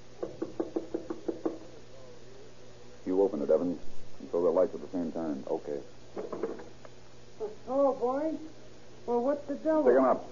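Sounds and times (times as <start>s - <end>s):
knocking on a door: 0.2s - 1.7s, 6.2s - 6.7s
speech: 3.6s - 3.9s, 4.6s - 6.3s, 7.8s - 10.2s.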